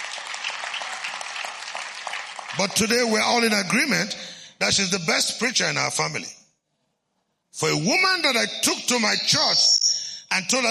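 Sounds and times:
people clapping: 0:00.0 - 0:03.8
speech: 0:02.5 - 0:06.4, 0:07.6 - 0:09.8, 0:10.4 - 0:10.6.

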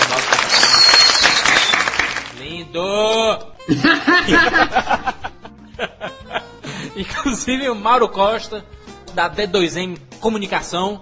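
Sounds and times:
applause: 0:00.0 - 0:02.4
speech: 0:03.7 - 0:05.2, 0:07.0 - 0:11.0
laughter: 0:03.7 - 0:07.0.

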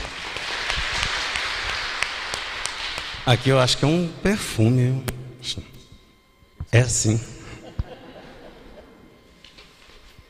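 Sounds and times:
crowd applauding: 0:00.0 - 0:03.8
speech: 0:03.2 - 0:05.7, 0:06.7 - 0:07.3
laughter: 0:07.3 - 0:09.6.

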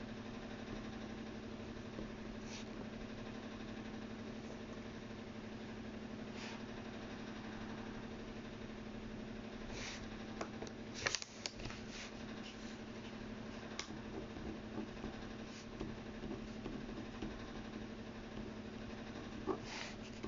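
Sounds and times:
low droning hum: 0:00.0 - 0:20.2.

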